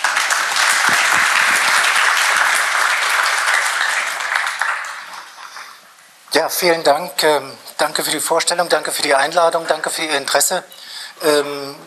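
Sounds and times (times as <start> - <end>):
audience applause for a speaker: 0.0 - 5.9
speech: 6.4 - 11.8.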